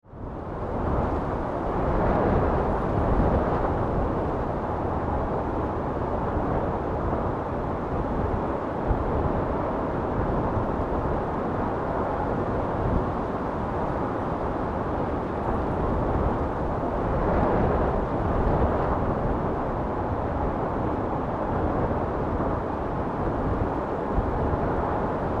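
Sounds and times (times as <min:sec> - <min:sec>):
constant wind storm: 0:00.0 - 0:25.3.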